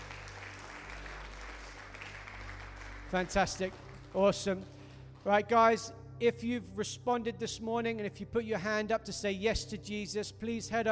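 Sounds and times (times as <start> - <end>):
applause: 0.0 - 5.8
speech: 3.1 - 10.9.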